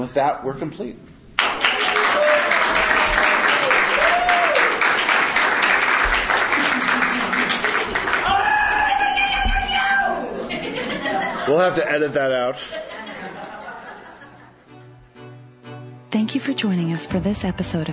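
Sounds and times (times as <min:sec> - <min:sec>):
speech: 0:00.0 - 0:01.2, 0:11.5 - 0:12.8, 0:16.3 - 0:17.9
audience applause: 0:01.4 - 0:09.6
laughter: 0:06.4 - 0:08.3, 0:10.2 - 0:14.7.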